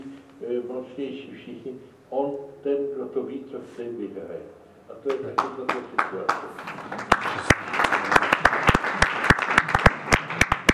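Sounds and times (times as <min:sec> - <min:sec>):
speech: 0:00.8 - 0:07.8
audience applause: 0:05.4 - 0:10.7.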